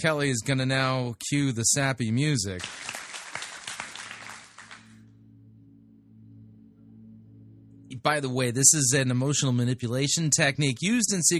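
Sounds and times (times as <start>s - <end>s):
speech: 0.0s - 3.0s, 8.0s - 11.3s
hand clapping: 2.6s - 5.0s.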